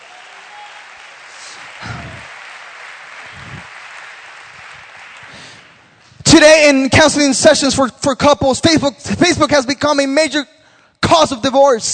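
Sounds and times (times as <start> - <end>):
audience applause: 0.0 - 6.1
speech: 6.4 - 11.9.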